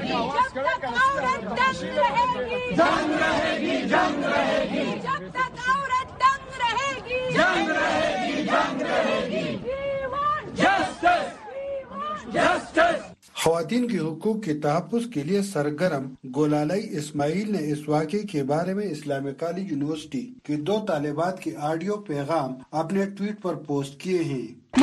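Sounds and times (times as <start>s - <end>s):
protesting students chanting slogans: 0.0s - 13.2s
speech: 0.2s - 5.4s, 12.3s - 24.8s.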